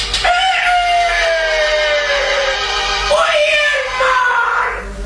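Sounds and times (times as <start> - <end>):
rooster crowing: 0.1 - 4.9.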